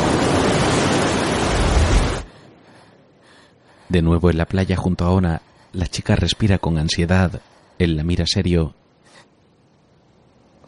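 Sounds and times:
sea waves breaking against steep jagged rocks below a cliff: 0:00.0 - 0:02.3
speech: 0:03.9 - 0:08.8.

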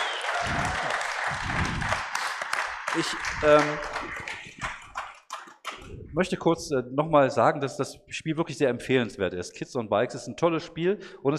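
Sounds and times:
crowd applauding: 0:00.0 - 0:05.8
speech: 0:03.0 - 0:04.3, 0:06.2 - 0:11.3.

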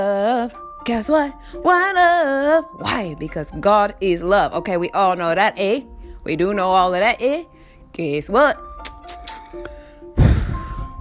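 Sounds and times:
speech: 0:00.0 - 0:09.8
person blowing a breath toward the listener: 0:08.9 - 0:11.0.

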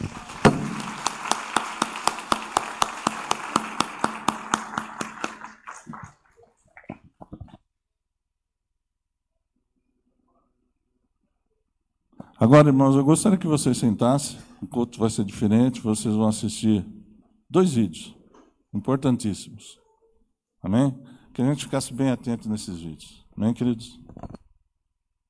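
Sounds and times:
audience applauding: 0:00.0 - 0:06.6
speech: 0:12.4 - 0:19.8, 0:20.6 - 0:24.4.

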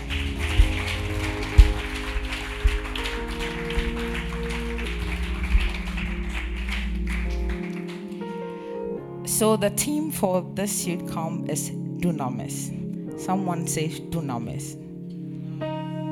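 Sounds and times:
low bass line: 0:00.0 - 0:07.7
crowd clapping: 0:00.0 - 0:08.5
sustained keyboard chords: 0:00.0 - 0:16.1
speech: 0:09.4 - 0:14.8.

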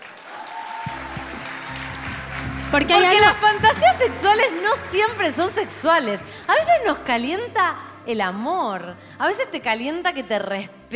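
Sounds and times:
audience applause: 0:00.0 - 0:07.1
speech: 0:02.7 - 0:10.9.

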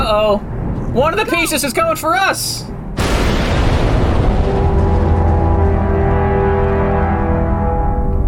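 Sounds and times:
speech: 0:00.1 - 0:03.6
explosion: 0:03.0 - 0:08.2.

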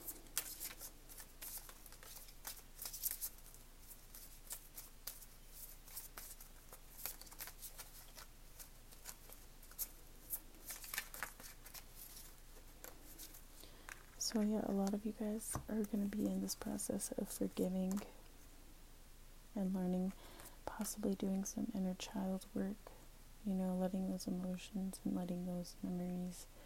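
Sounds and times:
tarot cards handled and drawn from a deck: 0:00.0 - 0:18.1
speech: 0:14.3 - 0:18.2, 0:19.6 - 0:26.6.

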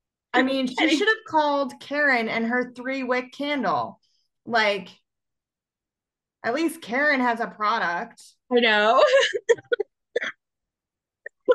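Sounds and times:
speech: 0:00.4 - 0:05.0, 0:06.4 - 0:09.8
person coughing: 0:09.2 - 0:10.4.

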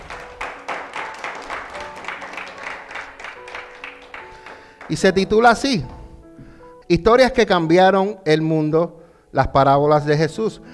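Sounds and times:
audience applause: 0:00.0 - 0:05.1
speech: 0:04.9 - 0:06.0, 0:06.9 - 0:10.7.

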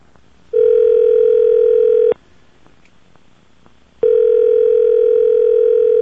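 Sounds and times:
telephone ringback tone: 0:00.6 - 0:02.2, 0:04.0 - 0:06.0.

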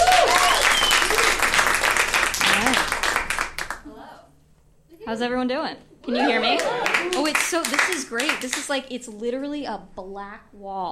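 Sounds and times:
shouts and cheers: 0:00.0 - 0:01.2
audience applause for a speaker coming on stage: 0:00.0 - 0:03.8, 0:06.2 - 0:08.6
speech: 0:05.1 - 0:10.9.

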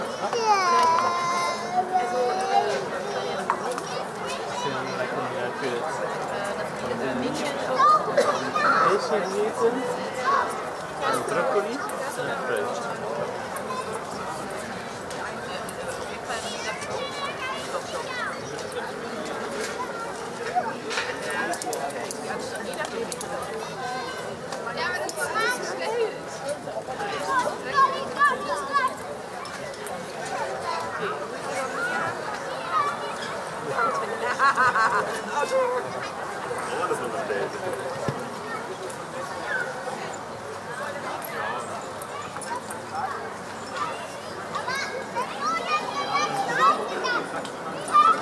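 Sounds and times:
murmur of many overlapping voices on a Berlin summer evening street: 0:00.0 - 0:48.2
speech: 0:09.1 - 0:10.4
scattered laughter: 0:34.2 - 0:35.2.

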